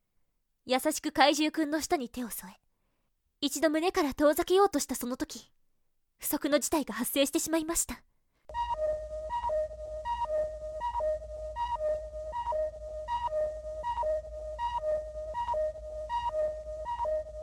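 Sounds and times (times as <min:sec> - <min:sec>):
speech: 0:00.7 - 0:02.6, 0:03.4 - 0:05.6, 0:06.2 - 0:08.6
energy timer electronic warning beeps: 0:08.5 - 0:17.4
low hum: 0:08.5 - 0:17.4.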